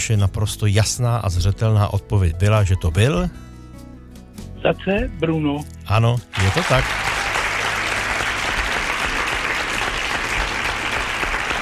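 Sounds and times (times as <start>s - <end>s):
speech: 0.0s - 3.5s, 4.6s - 7.1s
applause: 6.3s - 11.6s.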